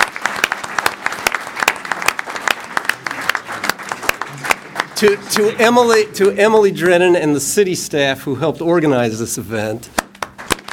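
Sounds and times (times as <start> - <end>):
audience round of applause: 0.0 - 6.4, 10.0 - 10.7
speech: 5.0 - 10.0.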